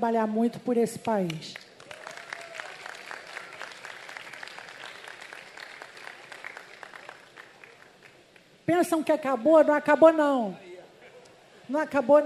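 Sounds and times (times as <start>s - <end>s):
speech: 0.0s - 1.7s, 8.7s - 10.6s, 11.7s - 12.2s
audience applause: 1.6s - 8.4s.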